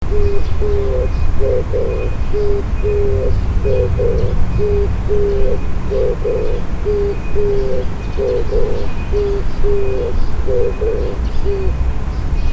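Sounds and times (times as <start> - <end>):
low rumble: 0.0 - 9.9
Oriental turtle dove cooing: 0.0 - 12.2.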